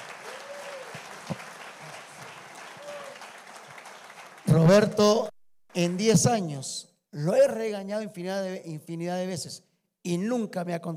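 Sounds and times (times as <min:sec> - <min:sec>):
audience applause: 0:00.0 - 0:05.0
speech: 0:04.6 - 0:10.9.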